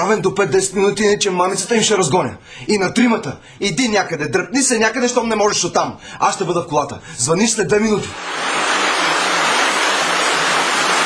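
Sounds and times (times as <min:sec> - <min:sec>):
speech: 0:00.0 - 0:08.8
heavy rain falling: 0:08.2 - 0:11.0.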